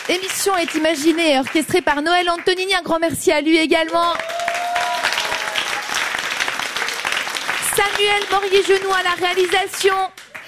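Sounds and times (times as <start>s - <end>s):
audience applause: 0.0s - 1.6s, 4.1s - 10.4s
speech: 0.1s - 4.4s, 8.0s - 10.2s.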